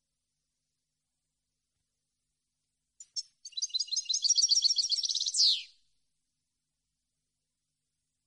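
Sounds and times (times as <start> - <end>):
European goldfinch song with tinkling twitters and trills: 3.0 - 5.7.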